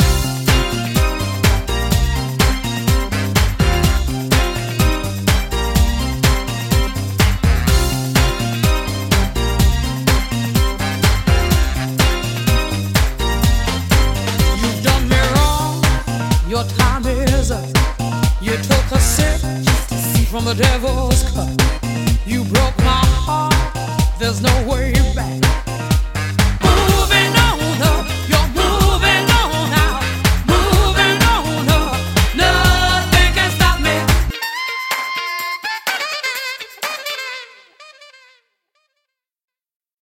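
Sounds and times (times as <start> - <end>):
house music samples: 0.0 - 37.3.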